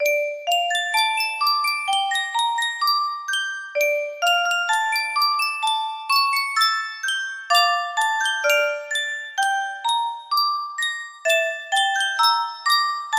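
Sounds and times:
music box: 0.0 - 13.1.

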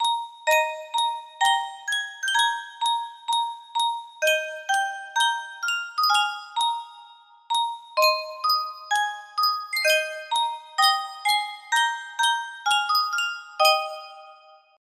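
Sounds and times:
Sankyo music box: 0.0 - 14.8.

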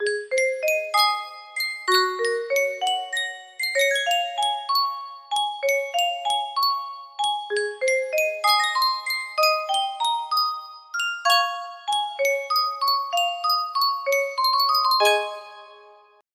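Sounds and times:
yunsheng music box: 0.0 - 16.2.

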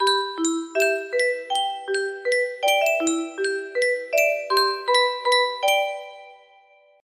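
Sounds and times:
music box melody: 0.0 - 6.8.

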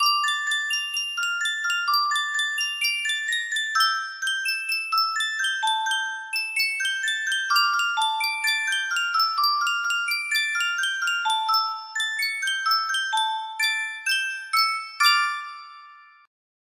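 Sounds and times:
Cuendet music box: 0.0 - 16.3.

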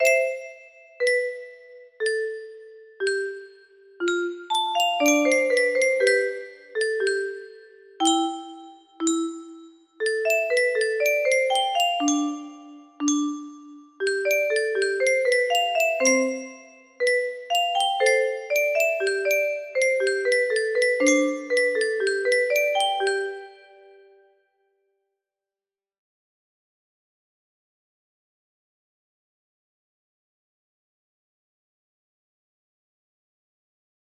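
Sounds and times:
music box melody: 0.0 - 24.3.

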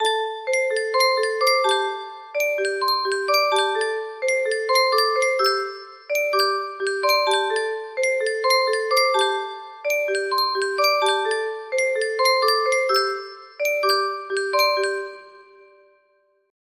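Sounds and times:
Yunsheng music box tune: 0.0 - 16.2.

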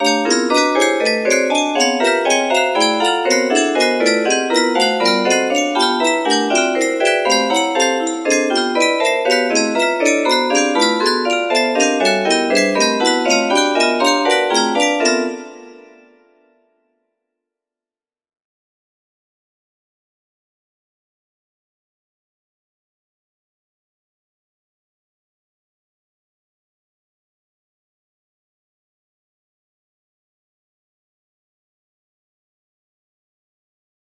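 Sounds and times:
music box: 0.0 - 16.2.

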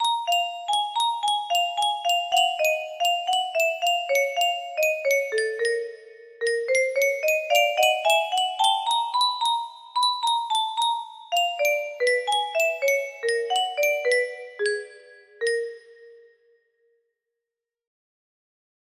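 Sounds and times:
mysterious melody: 0.0 - 16.4.

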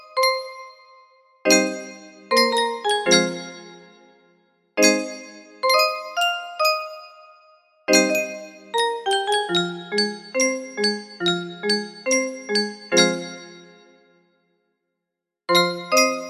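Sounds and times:
music box melody: 1.5 - 4.0, 4.8 - 13.8, 15.5 - 16.2.

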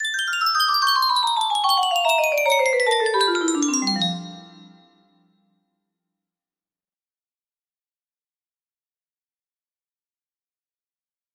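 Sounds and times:
music box melody: 0.0 - 5.0.

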